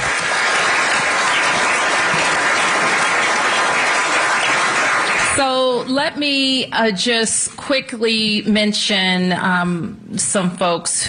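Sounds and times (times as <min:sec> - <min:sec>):
audience applause: 0:00.0 - 0:05.6
speech: 0:05.4 - 0:11.0.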